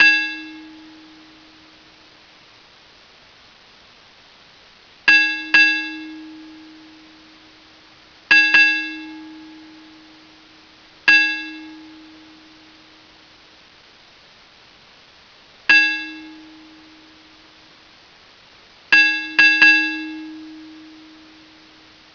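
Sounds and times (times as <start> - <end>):
bells ringing: 0.0 - 2.1, 5.1 - 13.3, 15.7 - 17.7, 18.9 - 22.1.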